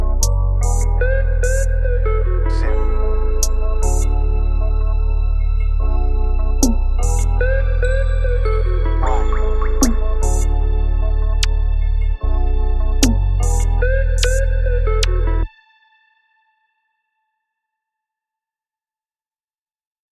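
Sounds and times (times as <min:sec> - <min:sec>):
instrumental music: 0:00.0 - 0:16.0.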